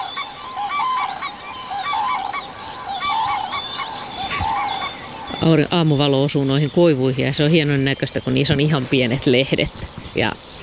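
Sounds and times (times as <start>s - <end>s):
common cranes calling: 0.0s - 10.6s
speech: 5.4s - 10.5s.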